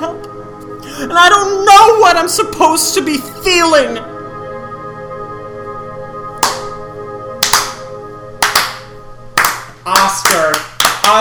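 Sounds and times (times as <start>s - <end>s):
speech: 1.0s - 4.1s
slow handclaps: 6.4s - 6.8s, 7.4s - 11.1s.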